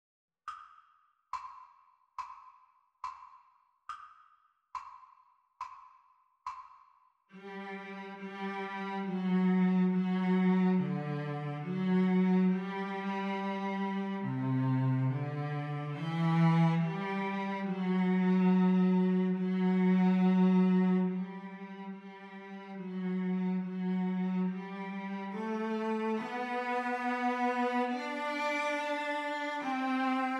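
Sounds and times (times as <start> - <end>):
cello duet: 7.4 - 30.3.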